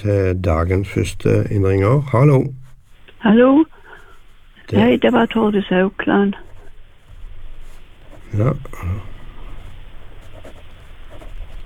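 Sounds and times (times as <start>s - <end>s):
speech: 0.0s - 2.6s, 3.2s - 3.8s, 4.7s - 6.5s, 8.3s - 9.1s
pen nib scratching on paper writing a name: 3.8s - 11.6s.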